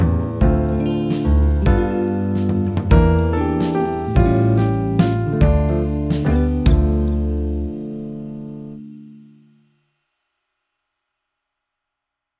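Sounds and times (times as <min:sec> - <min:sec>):
piano: 0:00.0 - 0:09.7.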